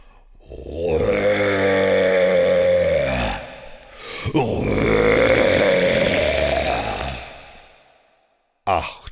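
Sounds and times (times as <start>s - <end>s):
human voice imitating a red deer stag's roar: 0.6s - 3.6s, 4.4s - 7.7s.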